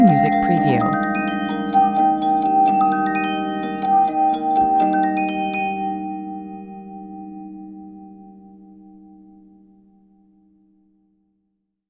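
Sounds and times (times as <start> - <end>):
1870 Swiss music box: 0.0 - 6.2.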